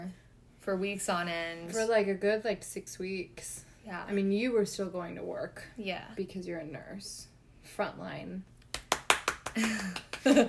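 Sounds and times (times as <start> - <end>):
speech: 0.7 - 8.5, 9.6 - 10.4
hand clapping: 8.6 - 10.4.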